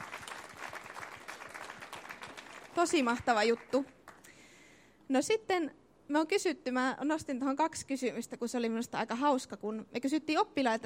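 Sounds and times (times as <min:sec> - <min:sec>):
audience applause for school reading programme volunteers: 0:00.0 - 0:02.8
speech: 0:02.8 - 0:04.0, 0:05.1 - 0:10.8.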